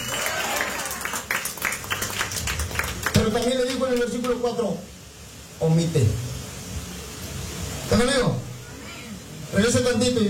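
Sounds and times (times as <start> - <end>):
church congregation clapping hard as an offering to God: 0.0 - 4.4
speech: 3.2 - 5.0, 5.6 - 6.3, 7.9 - 8.4, 9.5 - 10.2.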